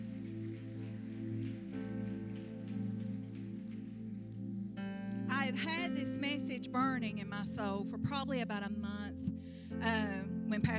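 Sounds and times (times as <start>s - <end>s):
audience clapping hands in praise: 0.0s - 4.2s
sustained low organ chords: 0.0s - 10.7s
speech: 5.5s - 10.7s.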